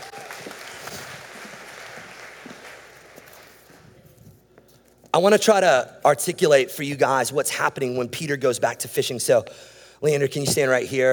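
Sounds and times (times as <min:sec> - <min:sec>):
audience applause for volunteers: 0:00.0 - 0:03.6
speech: 0:05.2 - 0:11.1.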